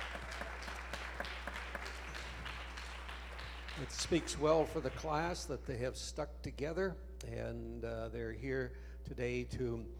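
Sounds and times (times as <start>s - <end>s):
crowd applauding: 0.0s - 5.5s
speech: 3.8s - 9.9s.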